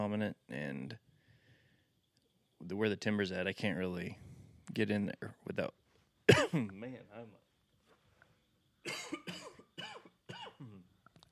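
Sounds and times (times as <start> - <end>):
speech: 0.1 - 1.1, 2.6 - 7.4
person coughing after inhaling a bug on a screened-in porch: 6.3 - 6.7, 8.9 - 10.8.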